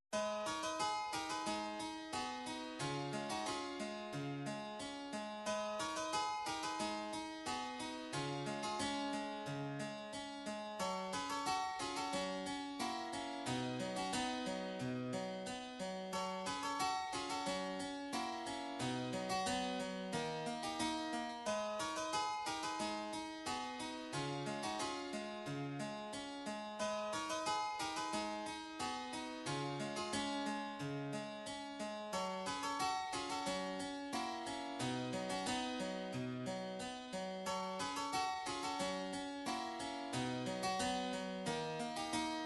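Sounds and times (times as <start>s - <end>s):
harpsichord: 0.2s - 42.4s.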